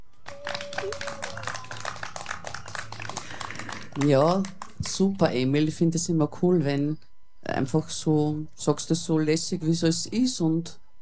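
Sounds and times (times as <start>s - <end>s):
small round of applause: 0.2s - 5.0s
speech: 4.0s - 11.0s.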